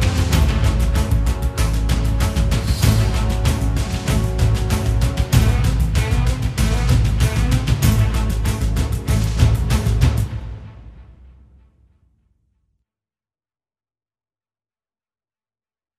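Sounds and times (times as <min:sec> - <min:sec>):
military action sounds: 0:00.0 - 0:11.0.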